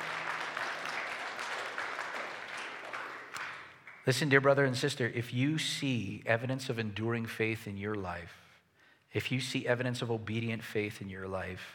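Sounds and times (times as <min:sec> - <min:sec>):
audience applause: 0:00.0 - 0:04.2
speech: 0:04.0 - 0:08.4, 0:09.2 - 0:11.7.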